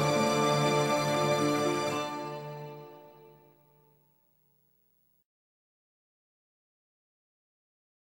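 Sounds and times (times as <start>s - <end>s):
mobster theme music: 0.0s - 3.6s.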